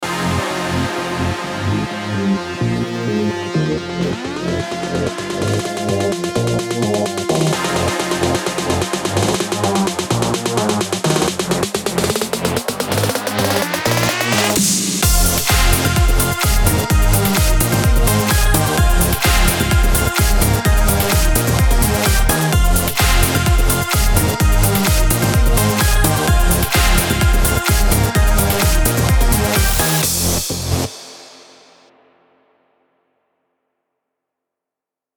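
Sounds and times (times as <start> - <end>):
happy summer party EDM music bed: 0.0 - 32.1.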